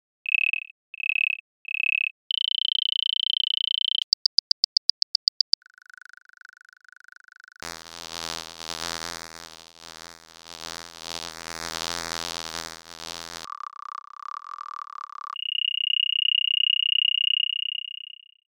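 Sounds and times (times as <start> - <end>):
insect: 0.3 - 4.0, 12.7 - 18.3.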